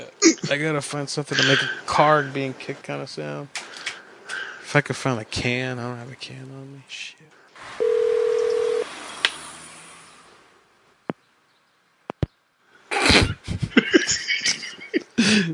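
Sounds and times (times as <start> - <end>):
speech: 0.5 - 3.6, 4.7 - 7.8
laughter: 1.3 - 2.4, 13.0 - 15.5
crackly handling noise: 3.5 - 4.4
phone dial tone: 7.8 - 8.9.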